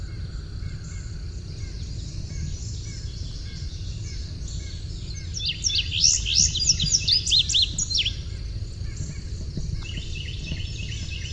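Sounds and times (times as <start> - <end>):
soft low hum: 0.0 - 11.3
Indigo bunting song: 1.7 - 8.2, 9.5 - 11.3.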